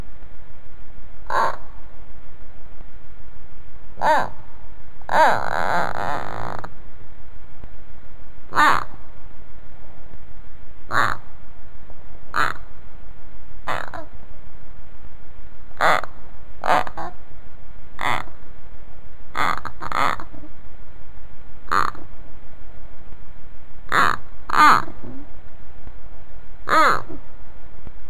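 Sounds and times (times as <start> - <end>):
low steady hiss: 0.0 - 28.0
common hamster rasping calls: 1.3 - 1.7, 4.0 - 4.4, 5.1 - 6.7, 10.9 - 11.2, 12.4 - 12.6, 13.7 - 14.1, 15.8 - 17.2, 18.0 - 18.3, 19.4 - 20.5, 21.7 - 22.0, 23.9 - 25.2, 26.7 - 27.2.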